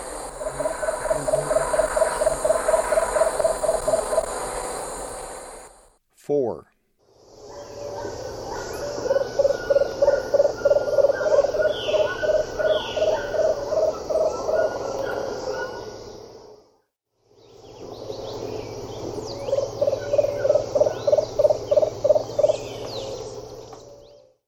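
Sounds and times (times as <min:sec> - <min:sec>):
Lemon-throated Barbet calling in the eastern lowlands of South America: 0:00.0 - 0:05.0, 0:07.6 - 0:16.0, 0:19.3 - 0:23.3.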